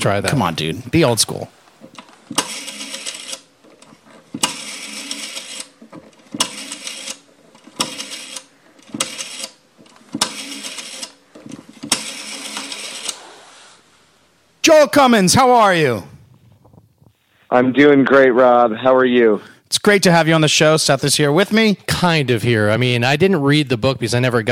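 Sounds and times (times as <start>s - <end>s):
speech: 0.0s - 1.6s, 14.8s - 16.1s, 17.5s - 24.5s
rotary phone dial whirring and ratcheting: 1.8s - 13.3s.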